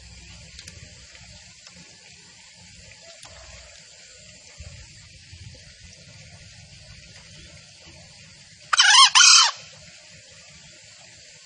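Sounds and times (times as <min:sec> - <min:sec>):
junglefowl crowing: 0:08.7 - 0:09.7.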